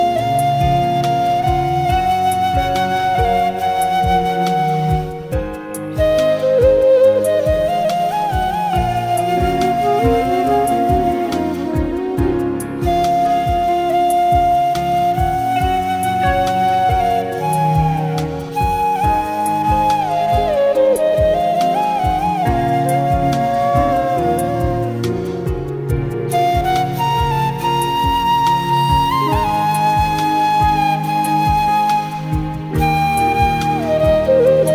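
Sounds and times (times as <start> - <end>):
instrumental flute: 0.0 - 34.7.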